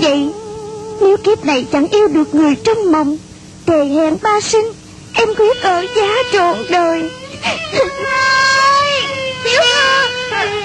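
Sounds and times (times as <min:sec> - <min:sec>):
speech: 0:01.0 - 0:08.6
young noblewoman weeping in a drama scene: 0:05.2 - 0:10.6.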